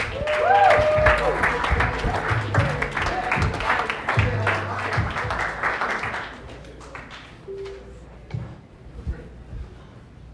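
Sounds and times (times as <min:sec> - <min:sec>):
audience applauding a comedian at a stand-up show: 0:00.0 - 0:07.4.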